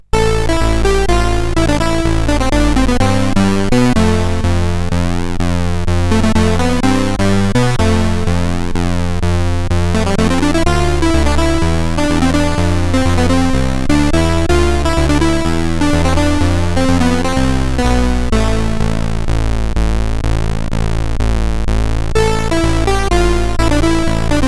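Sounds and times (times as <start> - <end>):
rock music on SID CSG8580R5 chip: 0.0 - 24.4.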